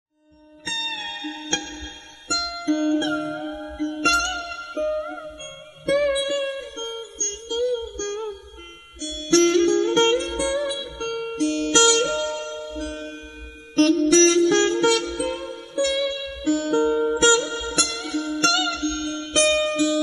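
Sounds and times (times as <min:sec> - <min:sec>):
sitar sample: 0:00.1 - 0:20.0.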